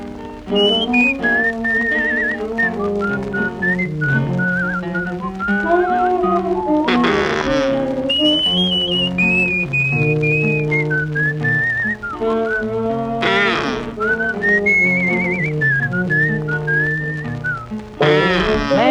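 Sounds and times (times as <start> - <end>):
bird call whistled by a person: 0.5 - 18.8.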